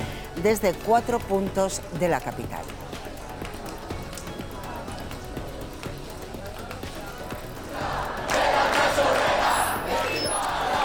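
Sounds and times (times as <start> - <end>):
speech: 0.4 - 3.0
protesters marching through central Madrid: 0.7 - 10.8.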